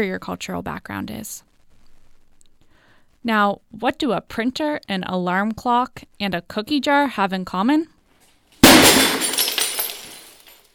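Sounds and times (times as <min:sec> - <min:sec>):
speech: 0:00.0 - 0:01.5, 0:03.2 - 0:08.0
object smashed with a baseball bat: 0:08.6 - 0:10.6.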